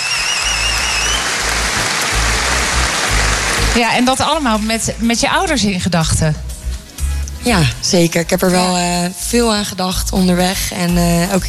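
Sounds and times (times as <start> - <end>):
thin high whistling tone: 0.0 - 1.3
crowd applause: 0.0 - 4.6
speech: 3.7 - 6.5, 7.4 - 11.4.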